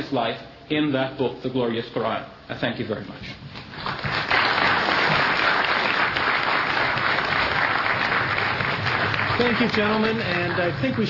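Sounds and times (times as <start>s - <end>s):
speech: 0.1s - 4.0s, 9.4s - 11.0s
audience applause: 3.7s - 11.0s.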